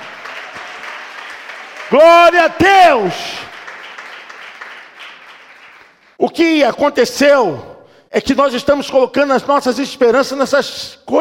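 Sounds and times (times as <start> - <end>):
audience applause: 0.0 - 6.2
speech: 1.9 - 3.4, 6.2 - 11.2.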